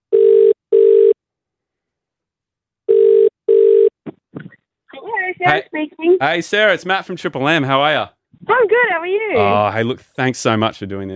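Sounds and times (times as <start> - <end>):
outgoing call ringback tone: 0.1 - 1.2, 2.9 - 3.9
speech: 5.5 - 11.1.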